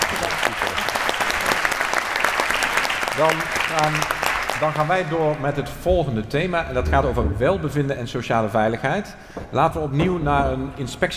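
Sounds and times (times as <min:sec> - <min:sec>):
audience applause: 0:00.0 - 0:05.7
speech: 0:03.2 - 0:11.1.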